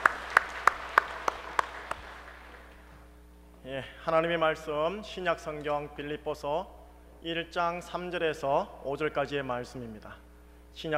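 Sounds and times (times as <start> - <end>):
audience clapping in unison: 0.0 - 2.9
speech: 3.7 - 10.2, 10.8 - 10.9.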